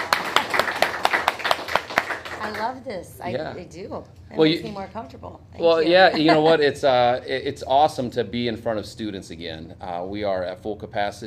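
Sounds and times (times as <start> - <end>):
audience applause: 0.0 - 2.7
speech: 2.6 - 11.2.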